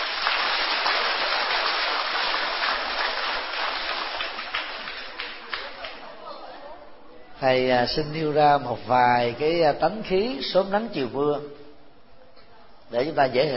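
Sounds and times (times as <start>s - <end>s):
sustained applause from a large crowd: 0.0s - 6.0s
speech: 7.4s - 11.6s, 12.9s - 13.5s.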